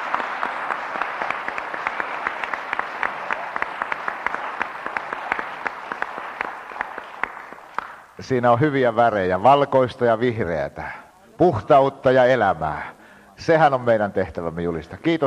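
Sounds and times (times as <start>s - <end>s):
church congregation applause thanking someone presented with white roses: 0.0s - 8.3s
speech: 8.2s - 15.2s.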